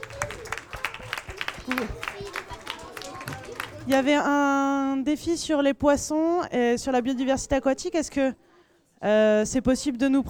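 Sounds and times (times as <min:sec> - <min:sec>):
audience applause: 0:00.0 - 0:04.1
speech: 0:01.7 - 0:02.0, 0:03.9 - 0:08.4, 0:09.0 - 0:10.2.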